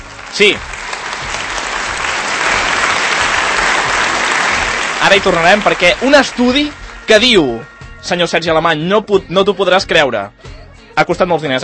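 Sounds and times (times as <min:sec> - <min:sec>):
crowd applauding: 0:00.0 - 0:07.4
speech: 0:00.4 - 0:00.7, 0:05.0 - 0:11.6.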